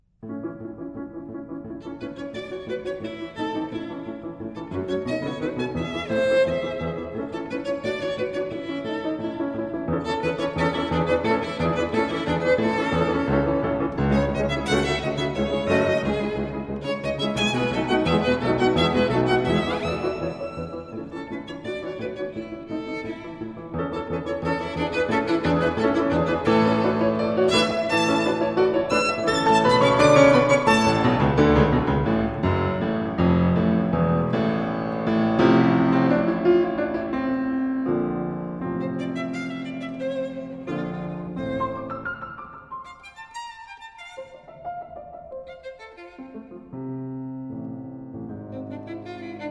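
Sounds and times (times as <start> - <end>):
violin sonata: 0.9 - 49.4.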